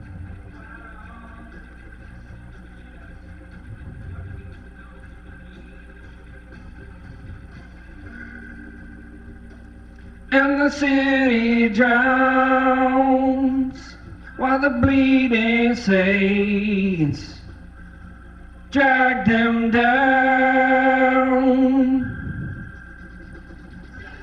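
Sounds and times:
Vox organ through Leslie speaker: 0.0s - 24.2s.

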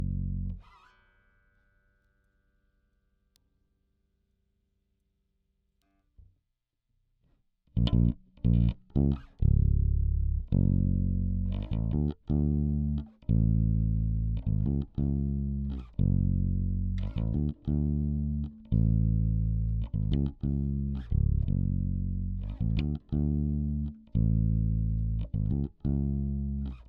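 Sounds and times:
bass guitar recorded by direct input: 0.0s - 0.6s, 7.8s - 26.8s.

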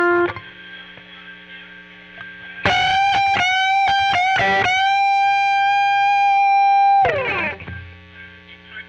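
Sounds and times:
solo guitar: 2.6s - 8.0s.

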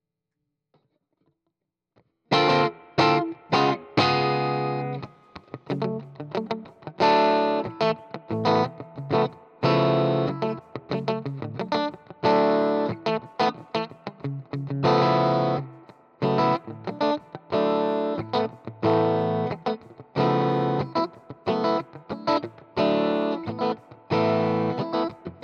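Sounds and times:
guitar: 2.3s - 25.4s.

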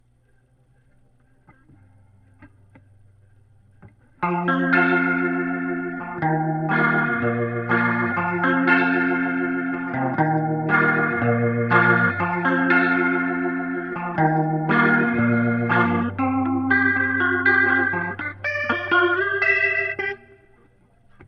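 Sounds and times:
guitar through Leslie rotary speaker: 0.0s - 21.2s.

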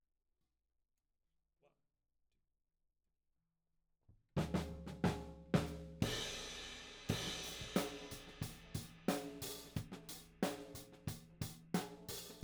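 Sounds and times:
tom drum: 4.4s - 12.4s.

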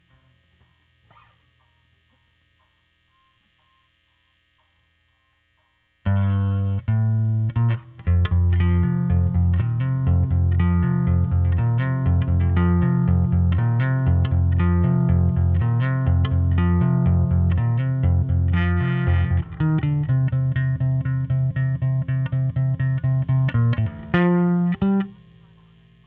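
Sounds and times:
overdriven bass: 6.0s - 26.0s.

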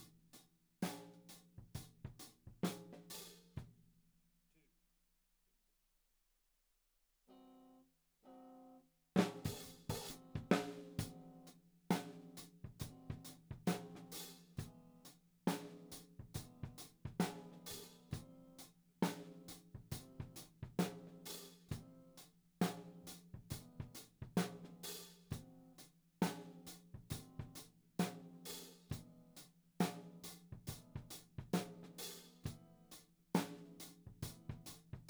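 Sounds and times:
tom drum: 0.8s - 3.4s, 9.2s - 14.8s, 15.5s - 18.3s, 19.0s - 22.0s, 22.6s - 25.5s, 26.2s - 29.1s, 29.8s - 32.6s, 33.4s - 35.0s.

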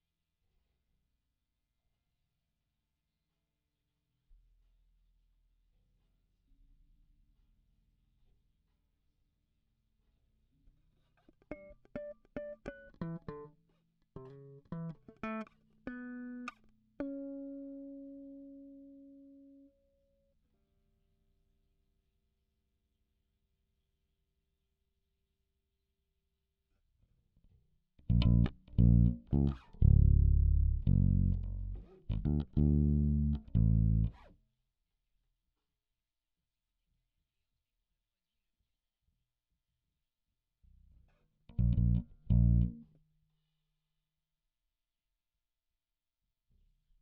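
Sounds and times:
bass guitar recorded by direct input: 12.0s - 13.5s, 28.1s - 34.3s, 41.5s - 42.9s.

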